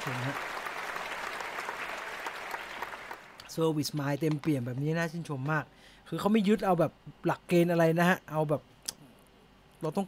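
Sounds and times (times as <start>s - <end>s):
speech: 0.0s - 0.6s, 3.6s - 8.7s, 9.8s - 10.0s
hand clapping: 0.0s - 4.7s.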